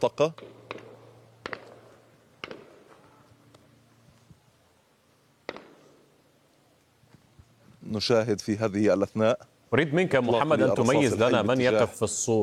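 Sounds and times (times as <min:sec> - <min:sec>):
speech: 0:00.0 - 0:00.5, 0:07.9 - 0:12.4
live gunfire shots aimed toward young men: 0:00.0 - 0:03.1, 0:05.4 - 0:06.1
low steady hum: 0:00.0 - 0:12.4.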